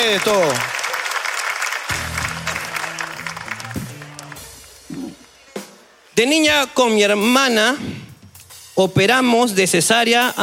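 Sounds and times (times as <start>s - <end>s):
audience applause: 0.0s - 5.6s
speech: 0.1s - 0.8s, 6.2s - 7.9s, 8.8s - 10.4s
sustained musical tones: 1.9s - 4.9s.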